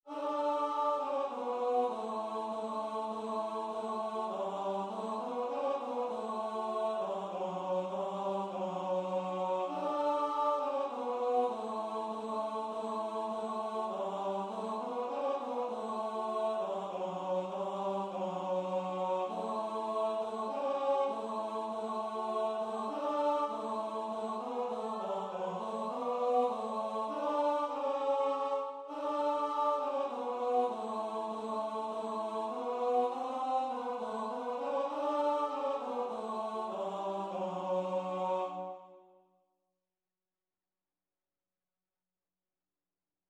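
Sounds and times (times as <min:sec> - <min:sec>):
tenor singing: 0:00.1 - 0:38.7.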